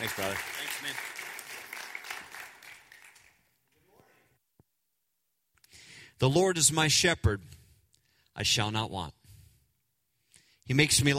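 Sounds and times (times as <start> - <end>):
speech: 0.0 - 1.2, 6.2 - 7.6, 8.4 - 9.2, 10.7 - 11.1
audience clapping to welcome a speaker at a morning church service: 0.0 - 3.6.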